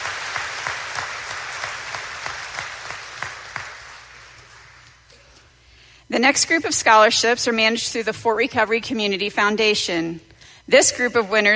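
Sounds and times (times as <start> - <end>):
audience applause: 0.0 - 5.0
speech: 6.1 - 11.5.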